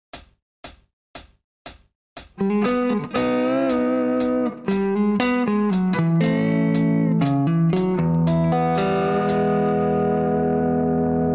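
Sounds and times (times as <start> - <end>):
musical lick: 2.4 - 11.2.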